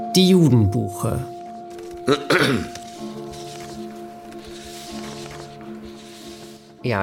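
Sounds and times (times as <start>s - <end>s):
speech: 0.2s - 1.3s, 2.1s - 2.8s, 6.9s - 7.0s
throat clearing: 2.1s - 2.8s.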